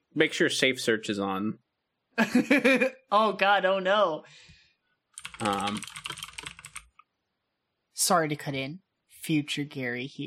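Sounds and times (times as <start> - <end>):
speech: 0.2 - 1.6, 2.2 - 4.5, 5.4 - 6.2, 8.0 - 10.2
typing on a computer keyboard to look something up: 5.1 - 7.0.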